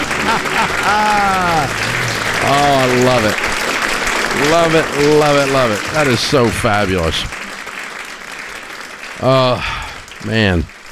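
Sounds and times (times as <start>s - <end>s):
laughter: 0.0s - 7.4s, 9.2s - 9.8s
crowd applause: 0.0s - 10.8s
speech: 0.3s - 3.5s, 4.4s - 7.4s, 9.2s - 10.8s.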